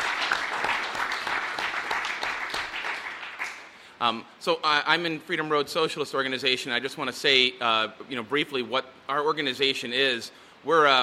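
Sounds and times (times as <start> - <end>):
crowd applause: 0.0 - 3.7
speech: 4.0 - 11.0.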